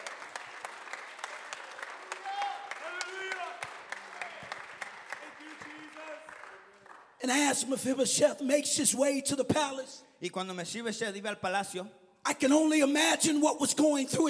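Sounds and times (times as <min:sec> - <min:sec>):
audience clapping hands: 0:00.0 - 0:07.4
speech: 0:07.2 - 0:14.2.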